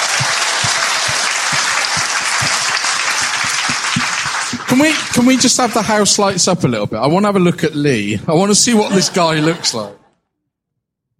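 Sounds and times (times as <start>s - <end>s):
laughter: 0.0s - 6.4s, 7.9s - 10.2s
crowd applauding loudly: 0.0s - 6.6s
speech: 4.7s - 10.0s.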